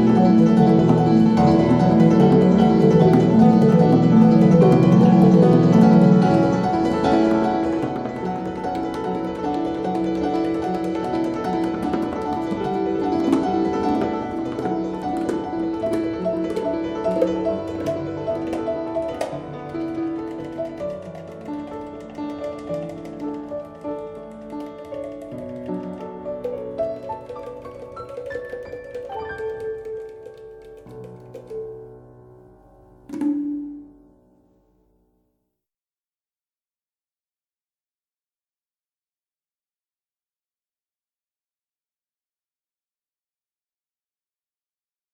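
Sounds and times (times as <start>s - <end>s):
piano improvisation: 0.0s - 34.4s.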